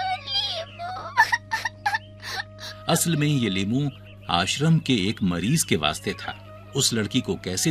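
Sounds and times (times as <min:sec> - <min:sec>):
girl crying: 0:00.0 - 0:03.0
speech: 0:02.9 - 0:07.6.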